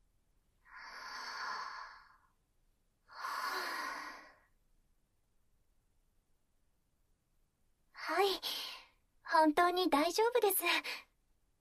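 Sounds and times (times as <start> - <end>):
deep slow breaths taken to calm down: 0.6 - 2.4, 3.1 - 4.6
speech: 9.4 - 11.0.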